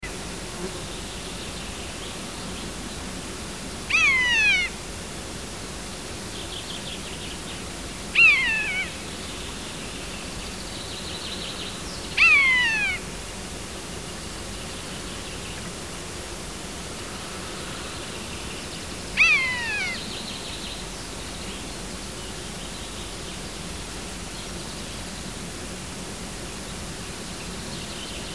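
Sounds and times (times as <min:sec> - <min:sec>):
common buzzard mewing: 0:03.9 - 0:04.8, 0:08.2 - 0:09.2, 0:12.2 - 0:13.2, 0:19.2 - 0:20.0.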